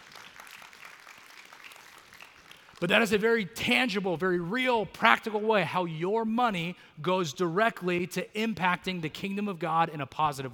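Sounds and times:
audience clapping: 0:00.0 - 0:03.2
speech: 0:02.8 - 0:10.5.

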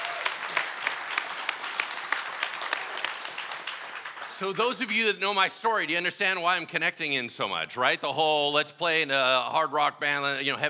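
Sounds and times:
audience applause: 0:00.0 - 0:04.9
speech: 0:04.4 - 0:10.6.

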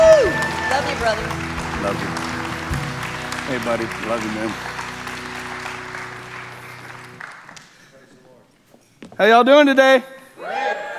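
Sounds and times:
church congregation applause welcoming a pastor: 0:00.0 - 0:08.0
speech: 0:01.0 - 0:02.2, 0:03.5 - 0:04.7, 0:09.2 - 0:10.6.

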